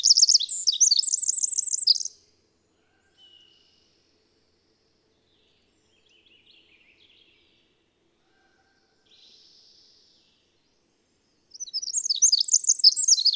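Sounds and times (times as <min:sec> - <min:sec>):
twittering bird song with short trills: 0:00.0 - 0:02.2, 0:11.5 - 0:13.3.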